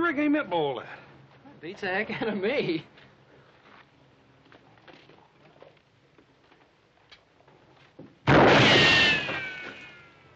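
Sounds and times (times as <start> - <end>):
speech: 0.1 - 1.0, 1.6 - 3.1
gunshot: 8.2 - 10.0.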